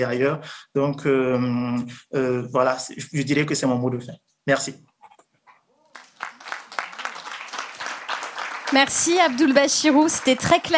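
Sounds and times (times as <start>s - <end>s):
speech: 0.0s - 4.9s, 8.7s - 10.7s
audience applause: 5.9s - 10.7s.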